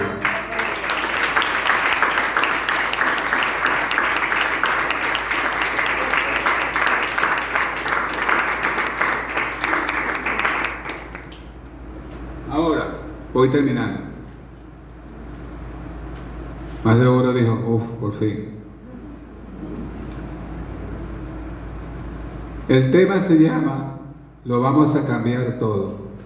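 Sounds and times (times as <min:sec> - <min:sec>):
audience applause: 0:00.0 - 0:11.5
speech: 0:13.4 - 0:14.0, 0:16.8 - 0:18.6, 0:22.7 - 0:26.0.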